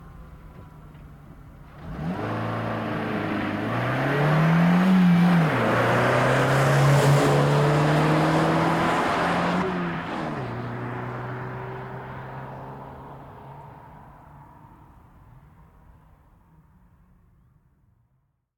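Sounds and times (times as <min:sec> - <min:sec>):
Volkswagen Golf V 1.6 FSI stopping, reversing and driving away: 0:00.2 - 0:13.3.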